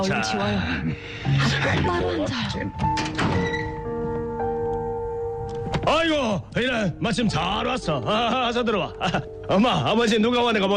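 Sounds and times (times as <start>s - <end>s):
speech: 0.0s - 3.5s, 5.8s - 10.7s
steady tonal background: 0.0s - 10.7s
door being opened for arriving visitors in a family home: 2.8s - 4.2s.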